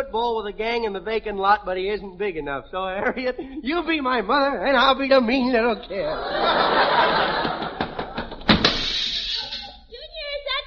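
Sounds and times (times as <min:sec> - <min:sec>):
speech: 0:00.0 - 0:07.8
laughter: 0:05.9 - 0:09.8
door slammed shut: 0:08.0 - 0:09.4.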